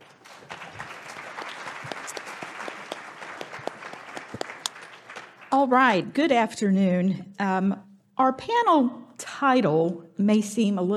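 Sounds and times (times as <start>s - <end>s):
audience applause welcoming a panel: 0.0s - 5.6s
speech: 5.5s - 10.9s.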